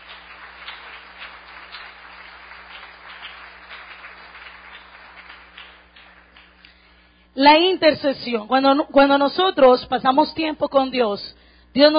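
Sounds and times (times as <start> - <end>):
congregation clapping at a church service on intercession: 0.0 - 6.8
speech: 7.4 - 11.9.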